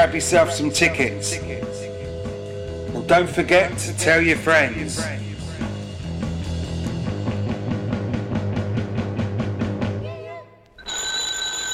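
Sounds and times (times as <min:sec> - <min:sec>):
speech: 0:00.0 - 0:01.9, 0:03.1 - 0:05.3
bright sustained electronic chime: 0:00.0 - 0:05.6
short sliding tone: 0:00.0 - 0:05.7
low humming backdrop: 0:00.0 - 0:09.6
electric doorbell ringing: 0:10.8 - 0:11.7.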